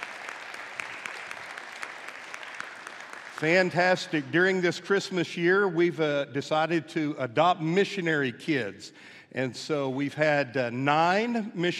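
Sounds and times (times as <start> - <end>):
audience applause welcoming a missionary family onto a stage: 0.0 - 4.3
speech: 3.4 - 11.7.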